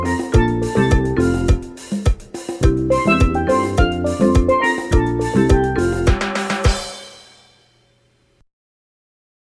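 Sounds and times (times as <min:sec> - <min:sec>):
calypso music with steel drum: 0:00.0 - 0:07.4.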